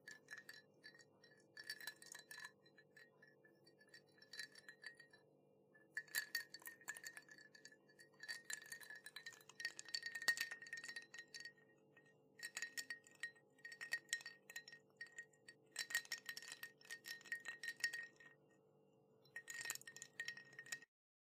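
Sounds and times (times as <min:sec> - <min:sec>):
ice cubes in glass: 0:00.0 - 0:03.1, 0:06.0 - 0:11.5, 0:12.4 - 0:18.3, 0:19.3 - 0:20.9.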